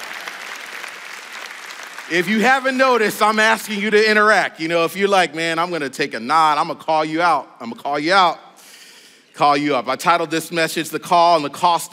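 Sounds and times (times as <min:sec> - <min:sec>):
audience clapping: 0:00.0 - 0:03.5
speech: 0:02.1 - 0:08.4, 0:09.4 - 0:11.9.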